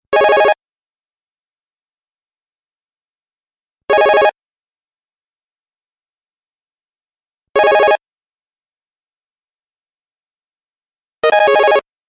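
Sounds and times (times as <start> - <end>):
digital cell phone ringer: 0.2 - 0.6, 3.9 - 4.4, 11.2 - 11.9.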